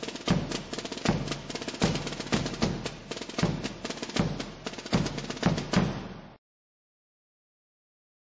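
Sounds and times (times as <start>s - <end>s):
drums: 0.0s - 6.4s.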